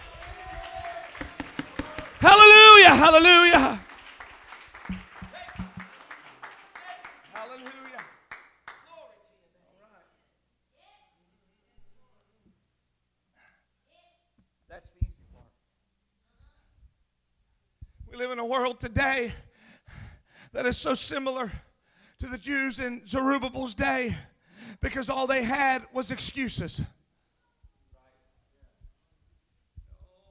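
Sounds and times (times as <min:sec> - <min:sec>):
audience clapping hands: 0:00.0 - 0:08.9
speech: 0:02.2 - 0:03.8, 0:18.5 - 0:19.4, 0:20.5 - 0:27.0.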